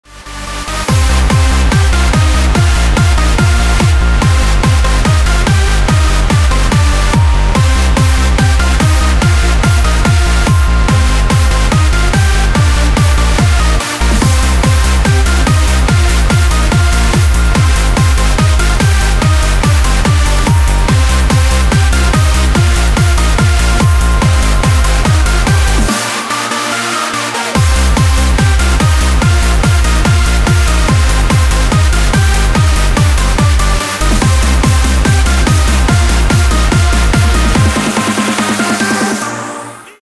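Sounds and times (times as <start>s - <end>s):
radio music mix: 0.0s - 40.0s.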